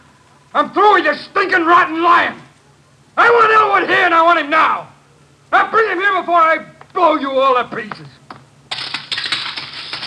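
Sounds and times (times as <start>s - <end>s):
speech: 0.5s - 2.4s, 3.2s - 4.9s, 5.5s - 8.2s
telephone metallic clatter and jangle: 8.7s - 10.0s
telephone thrown and crashing on hallway floor: 8.7s - 10.0s.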